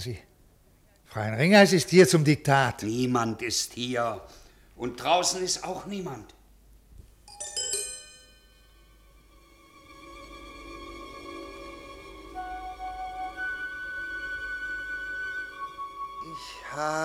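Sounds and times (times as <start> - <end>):
speech: 0.0 - 0.3, 1.1 - 6.4, 16.8 - 17.0
typewriter bell ringing: 7.3 - 8.8.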